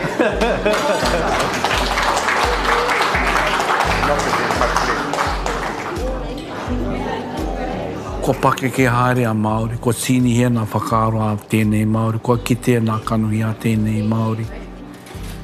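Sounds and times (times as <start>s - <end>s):
audience clapping: 0.0s - 6.3s
laughter: 0.0s - 8.0s
speech: 0.2s - 1.6s, 8.3s - 14.6s.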